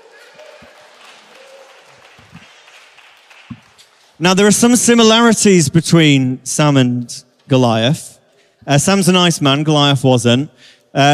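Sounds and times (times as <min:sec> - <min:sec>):
crowd clapping: 0:00.0 - 0:04.6
speech: 0:04.2 - 0:11.1.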